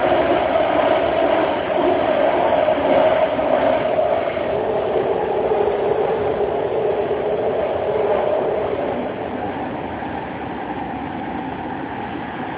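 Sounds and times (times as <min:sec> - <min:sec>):
BART train sounds: 0:00.0 - 0:12.5.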